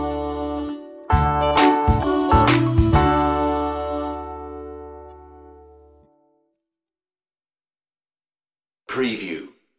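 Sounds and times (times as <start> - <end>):
instrumental music without lead: 0.0 - 6.6.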